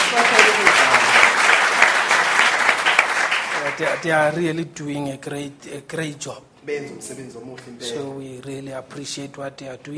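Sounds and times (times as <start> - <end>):
crowd applauding: 0.0 - 4.1
speech: 3.8 - 9.9.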